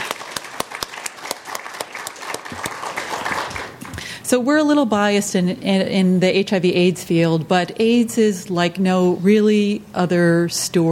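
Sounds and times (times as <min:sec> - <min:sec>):
audience applause: 0:00.0 - 0:04.1
speech: 0:04.3 - 0:10.9.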